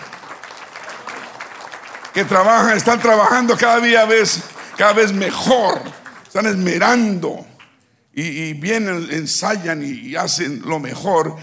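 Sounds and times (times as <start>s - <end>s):
audience applauding: 0.0s - 7.0s
speech: 2.2s - 7.5s, 8.2s - 11.4s.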